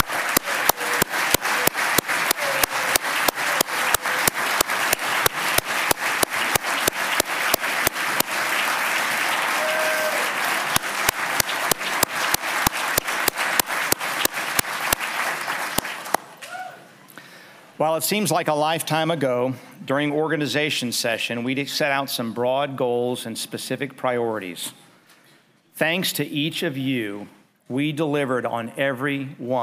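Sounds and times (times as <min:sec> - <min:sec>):
audience applause: 0:00.0 - 0:16.6
speech: 0:17.8 - 0:24.8, 0:25.8 - 0:29.6.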